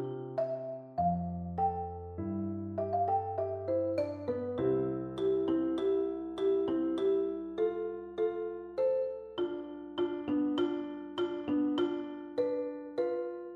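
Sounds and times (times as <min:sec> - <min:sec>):
marimba: 0:00.0 - 0:13.5.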